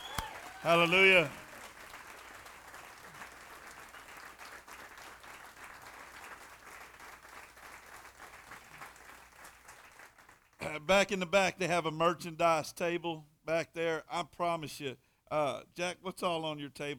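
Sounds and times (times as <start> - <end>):
church audience round of applause: 0.0 - 10.6
speech: 0.6 - 1.4, 10.9 - 16.9.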